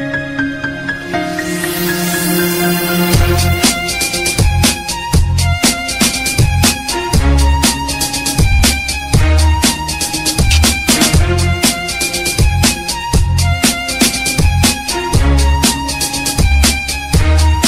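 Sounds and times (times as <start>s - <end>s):
EDM TikTok remix: 0.2s - 17.6s.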